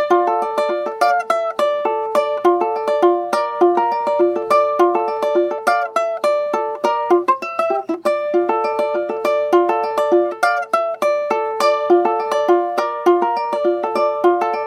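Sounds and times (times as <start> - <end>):
ukulele fingerpicking: 0.0 - 14.6.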